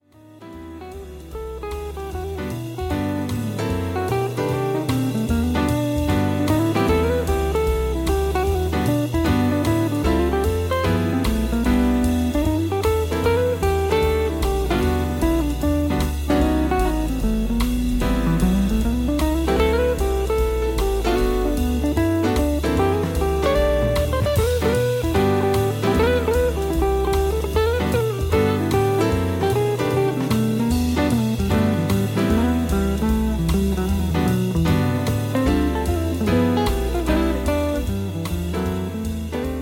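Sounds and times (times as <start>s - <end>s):
instrumental music: 0.0s - 39.6s.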